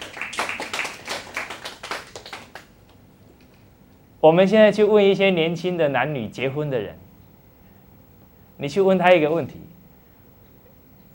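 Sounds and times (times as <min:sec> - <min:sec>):
audience clapping: 0:00.0 - 0:03.1
speech: 0:04.2 - 0:07.0, 0:08.6 - 0:09.6.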